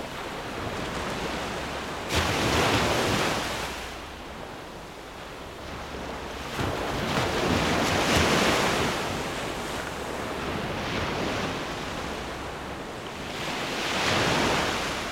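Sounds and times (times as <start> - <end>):
waves at sea: 0.0 - 15.1.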